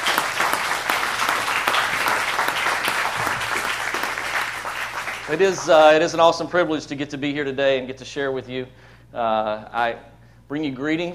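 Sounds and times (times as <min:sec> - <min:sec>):
audience applause welcoming a guest speaker to a church: 0:00.0 - 0:05.9
speech: 0:05.3 - 0:11.1.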